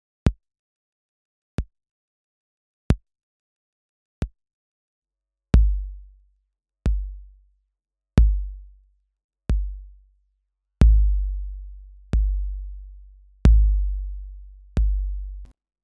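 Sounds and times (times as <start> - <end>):
bass drum: 5.6 - 6.1, 6.9 - 7.3, 8.2 - 8.7, 9.5 - 10.0, 10.8 - 15.5.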